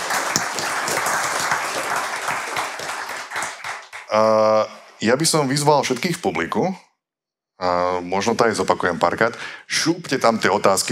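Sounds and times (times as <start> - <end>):
audience applause: 0.0 - 4.2
speech: 4.1 - 6.9, 7.6 - 10.9.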